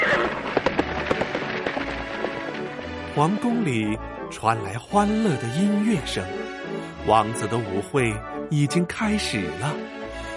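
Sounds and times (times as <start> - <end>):
horse hooves clip-clopping drawing a pumpkin carriage: 0.0 - 3.2
speech: 3.2 - 10.0.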